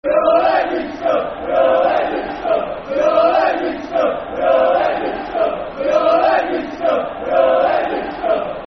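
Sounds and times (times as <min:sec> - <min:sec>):
football crowd chanting: 0:00.0 - 0:08.6.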